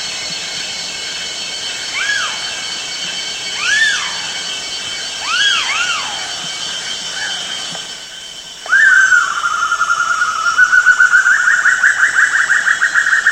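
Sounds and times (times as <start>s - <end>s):
Banded broadbill Eurylaimus javanicus calls: 1.9s - 2.7s, 3.5s - 4.6s, 5.2s - 7.7s, 8.6s - 13.2s.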